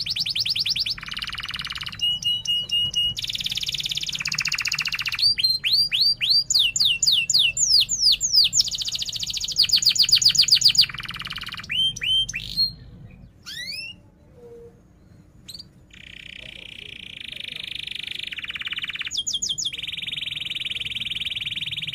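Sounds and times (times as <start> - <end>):
canary song: 0.0 - 21.9.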